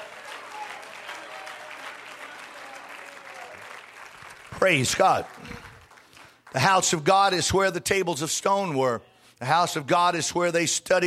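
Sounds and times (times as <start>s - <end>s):
audience clapping: 0.0s - 7.1s
speech: 4.6s - 5.7s, 6.6s - 11.0s.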